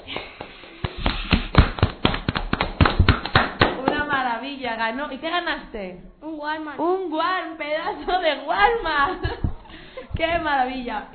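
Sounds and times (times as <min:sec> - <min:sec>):
small group of people clapping by hand: 0:00.1 - 0:04.2
speech: 0:04.8 - 0:09.5, 0:10.2 - 0:11.1.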